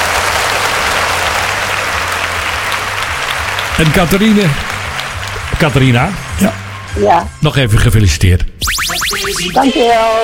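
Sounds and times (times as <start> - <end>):
crowd applause: 0.0 - 7.0
speech: 3.8 - 4.7, 5.6 - 10.2.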